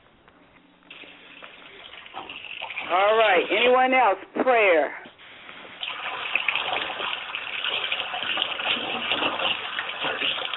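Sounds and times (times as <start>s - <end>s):
running water: 0.9s - 4.2s, 5.7s - 10.5s
speech: 2.9s - 5.0s.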